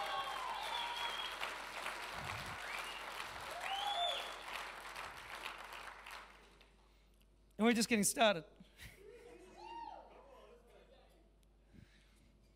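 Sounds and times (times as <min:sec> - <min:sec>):
audience clapping: 0:00.0 - 0:07.0
speech: 0:07.6 - 0:08.9.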